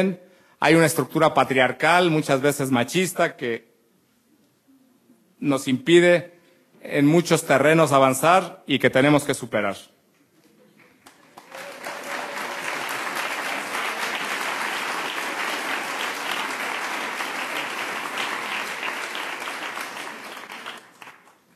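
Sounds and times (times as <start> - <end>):
speech: 0.0 - 3.7, 5.4 - 9.9
audience applause: 11.0 - 21.5.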